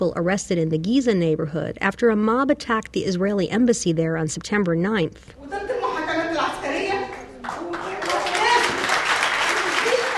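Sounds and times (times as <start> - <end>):
speech: 0.0 - 5.9
supporters applauding: 7.1 - 10.1.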